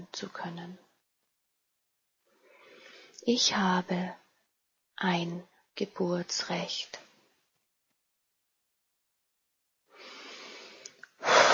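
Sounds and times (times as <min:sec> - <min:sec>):
speech: 0:00.1 - 0:00.9, 0:03.2 - 0:04.2, 0:05.0 - 0:07.0
deep breathing during guided meditation: 0:02.2 - 0:03.2, 0:09.9 - 0:11.5.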